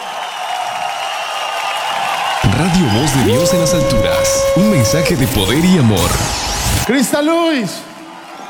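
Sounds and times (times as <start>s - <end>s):
audience applauding: 0.0s - 3.4s
speech: 2.5s - 7.9s.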